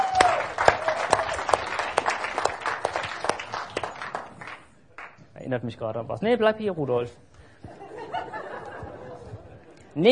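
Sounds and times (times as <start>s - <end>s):
audience applause: 0.0s - 5.2s
speech: 5.5s - 7.3s, 10.0s - 10.1s
laughter: 7.7s - 10.0s.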